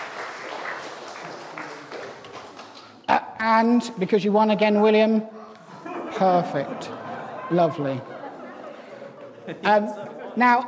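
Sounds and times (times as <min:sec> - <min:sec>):
audience round of applause: 0:00.0 - 0:03.0
speech: 0:03.1 - 0:05.4, 0:06.2 - 0:08.2, 0:09.5 - 0:10.6
laughter: 0:05.4 - 0:10.6.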